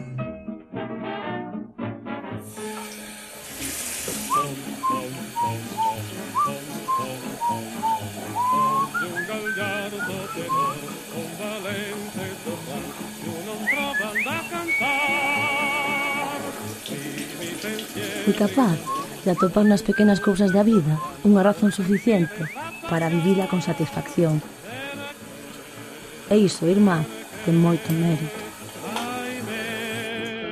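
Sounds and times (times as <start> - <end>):
running tap: 2.4 - 30.4
man whistling a tune: 4.3 - 11.0, 13.6 - 16.1, 18.8 - 23.7
speech: 18.3 - 24.6, 26.3 - 28.4.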